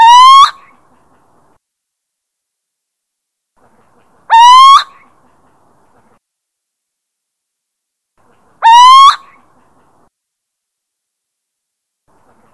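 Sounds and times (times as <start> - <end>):
little owl territorial hooting: 0.0 - 0.7, 4.3 - 5.0, 8.6 - 9.4.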